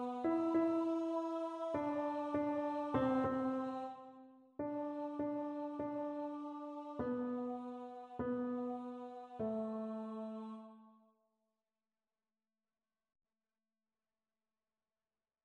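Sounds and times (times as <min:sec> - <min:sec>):
tenor singing: 0:00.0 - 0:10.8.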